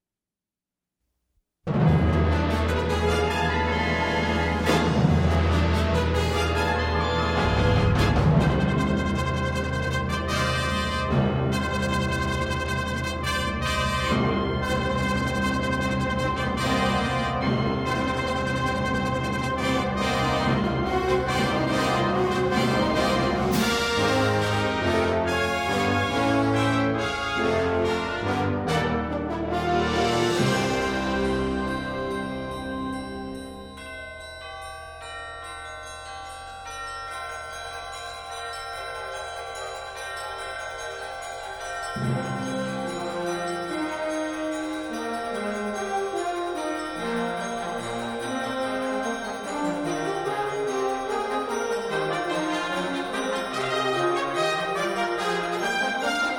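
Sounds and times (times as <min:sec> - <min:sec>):
fanfare: 0:01.7 - 0:33.2, 0:38.6 - 0:56.3.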